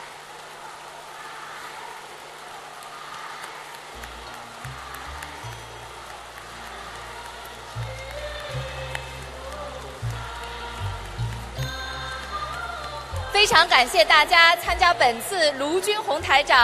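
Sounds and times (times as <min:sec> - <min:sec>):
large crowd applauding: 0:00.0 - 0:16.6
low music or tones: 0:04.0 - 0:16.6
speech: 0:13.4 - 0:16.6.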